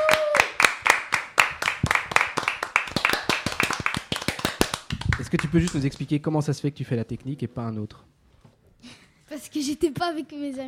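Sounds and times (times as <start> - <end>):
applause in studio: 0.0 - 6.1
speech: 5.3 - 8.2, 9.5 - 10.6.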